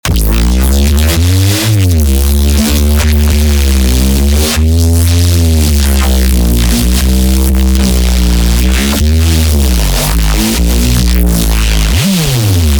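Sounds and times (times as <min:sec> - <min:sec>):
crunchy bass: 0:00.0 - 0:12.7.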